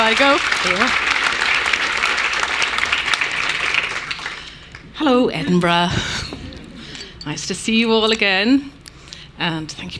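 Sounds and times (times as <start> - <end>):
audience applause welcoming an author to a reading event in Edinburgh: 0.0 - 4.8
speech: 0.1 - 1.2, 5.0 - 6.3, 7.2 - 8.8, 9.4 - 9.9.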